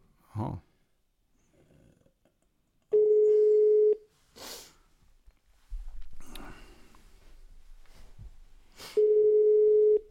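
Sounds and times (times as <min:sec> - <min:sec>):
phone beeping with an incoming call: 0:02.9 - 0:04.0, 0:09.0 - 0:10.0
faint shuffling: 0:04.1 - 0:08.8.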